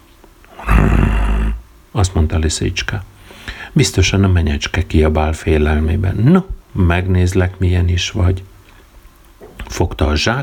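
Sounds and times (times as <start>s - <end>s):
dog growling: 0.5s - 1.6s
speech: 2.0s - 8.5s, 9.7s - 10.4s.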